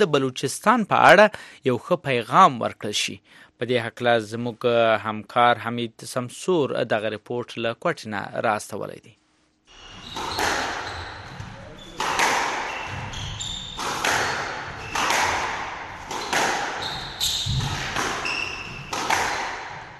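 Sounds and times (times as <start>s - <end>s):
speech: 0.0s - 9.2s
short high squeaks: 9.7s - 19.8s
squash ball thuds at an international squash league match, Shahnawaz squash complex, Quetta: 10.0s - 19.9s.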